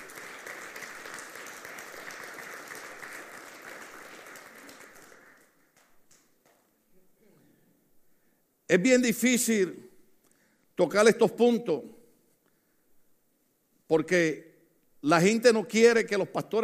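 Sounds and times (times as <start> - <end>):
audience applause: 0.0 - 6.3
speech: 8.7 - 9.8, 10.8 - 12.0, 13.9 - 16.6.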